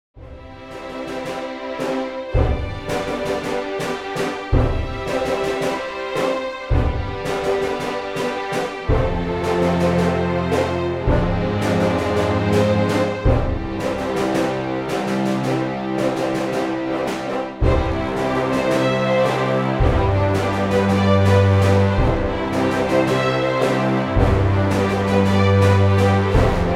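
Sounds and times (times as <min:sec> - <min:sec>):
film score music: 0:00.2 - 0:26.7.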